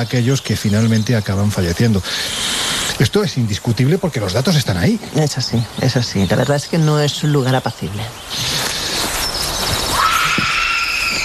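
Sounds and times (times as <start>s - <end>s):
speech: 0.0s - 8.6s
eerie scream sound effect: 9.9s - 11.2s.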